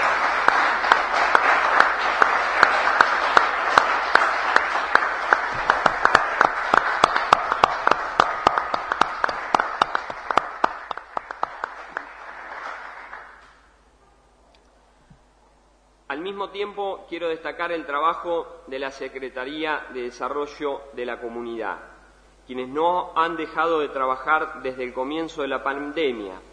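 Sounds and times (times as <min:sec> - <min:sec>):
audience applause: 0:00.0 - 0:13.7
speech: 0:16.4 - 0:21.9, 0:22.5 - 0:26.5.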